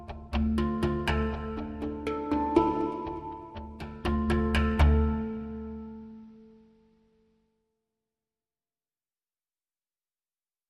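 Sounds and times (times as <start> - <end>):
lead melody motif: 0.0 - 6.5.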